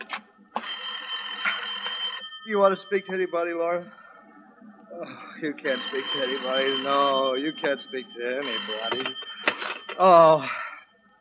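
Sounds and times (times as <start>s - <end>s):
telephone ringing: 0.5s - 4.0s, 5.5s - 10.2s
speech: 2.5s - 4.0s, 5.0s - 9.3s, 10.0s - 10.6s.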